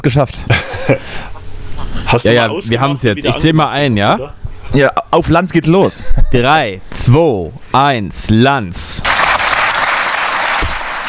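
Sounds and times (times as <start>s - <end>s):
speech: 0.0s - 1.3s, 2.1s - 9.2s
laughter: 0.5s - 1.4s
approving studio audience applause: 9.0s - 11.0s.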